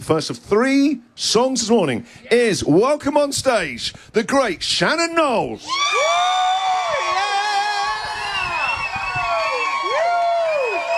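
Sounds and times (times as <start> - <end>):
speech: 0.0 - 6.3
audience applause: 6.0 - 10.9.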